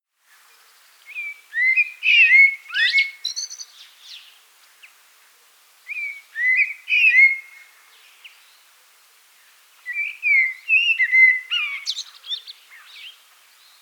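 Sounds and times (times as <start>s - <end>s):
blackbird singing: 0.6s - 4.3s, 5.9s - 7.6s, 9.9s - 13.8s.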